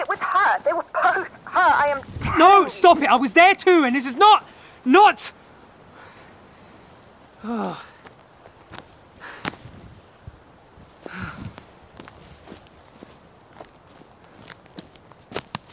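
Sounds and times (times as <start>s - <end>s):
footsteps of someone walking: 0.0s - 3.1s, 8.0s - 15.7s
speech: 1.8s - 5.4s, 7.4s - 7.9s.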